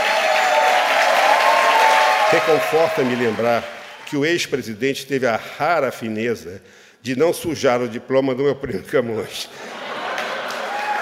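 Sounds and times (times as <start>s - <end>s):
audience applauding in a standing ovation: 0.0s - 4.2s, 9.8s - 10.9s
speech: 2.3s - 9.8s
laughter: 9.5s - 10.9s.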